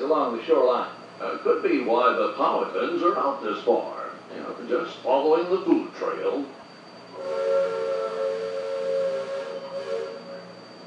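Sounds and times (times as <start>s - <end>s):
speech: 0.1s - 6.6s
steamboat steam whistle blast: 7.1s - 10.8s.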